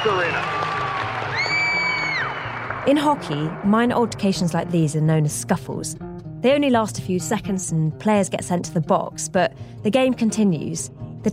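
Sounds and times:
speech: 0.0 - 0.5, 2.8 - 11.3
arena crowd applause: 0.0 - 4.7.

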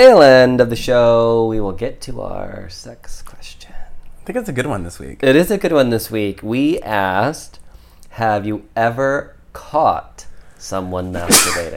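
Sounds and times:
speech: 0.0 - 11.7
sneeze: 11.2 - 11.7.

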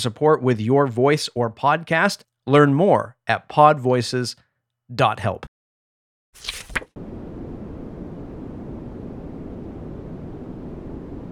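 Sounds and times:
speech: 0.0 - 5.5
white noise: 7.0 - 11.3.

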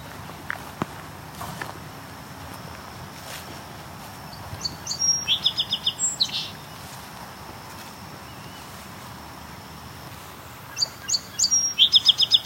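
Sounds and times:
song sparrow singing: 3.7 - 7.1, 8.2 - 8.8, 10.6 - 12.4.

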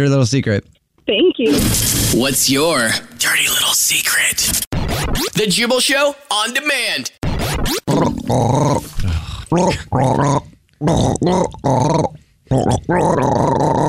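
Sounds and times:
speech: 0.0 - 13.8
gargled growling vocal rendition of a radio theme jingle: 7.9 - 13.8.

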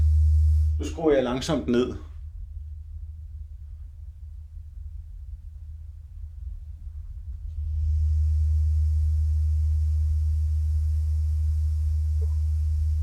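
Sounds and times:
deep test tone: 0.0 - 2.0, 7.6 - 13.0
played test noise hiss: 0.0 - 2.3, 7.4 - 13.0
speech: 0.8 - 2.1.

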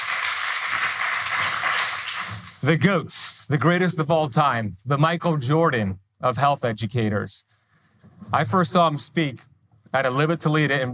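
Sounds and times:
audience round of applause: 0.0 - 2.6
speech: 2.6 - 7.6, 8.2 - 10.9.

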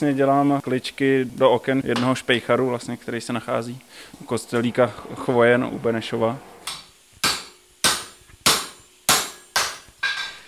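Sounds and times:
speech: 0.0 - 6.5
blacksmith hammering metal at a forge: 6.7 - 10.4.

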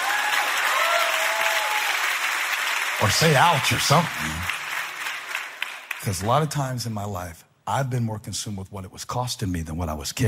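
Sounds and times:
audience clapping: 0.0 - 6.8
speech: 3.0 - 4.6, 6.0 - 10.2.

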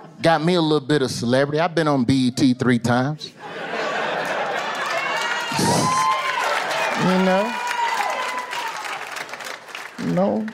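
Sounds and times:
speech: 0.2 - 3.6, 7.0 - 7.6, 10.0 - 10.5
laughter: 3.3 - 6.1
audience clapping: 4.1 - 10.5
short shouts or whoops: 4.6 - 9.4.

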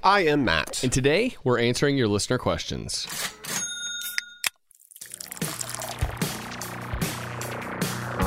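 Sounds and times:
speech: 0.0 - 3.6
beer pouring with foamy fizzing: 4.7 - 8.1.

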